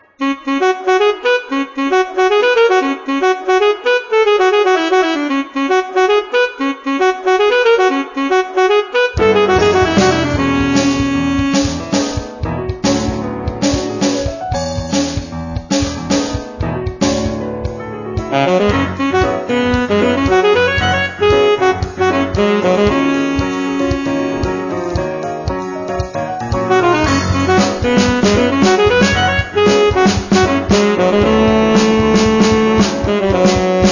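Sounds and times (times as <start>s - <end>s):
saxophone: 0.0s - 12.1s, 18.3s - 25.1s, 26.6s - 33.9s
piano: 7.6s - 33.9s
drums: 9.2s - 33.9s.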